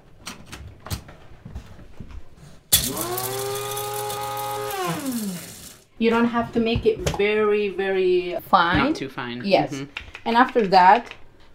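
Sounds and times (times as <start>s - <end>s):
blender grinding ginger and spices: 2.7s - 5.9s
speech: 6.0s - 11.2s.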